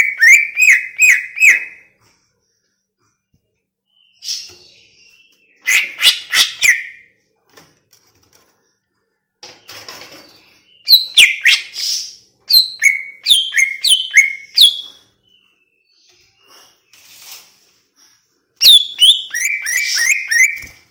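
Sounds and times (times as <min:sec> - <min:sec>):
greater green leafbird whistling song: 0:00.0 - 0:01.9, 0:03.9 - 0:07.1, 0:10.7 - 0:16.6, 0:18.6 - 0:20.8.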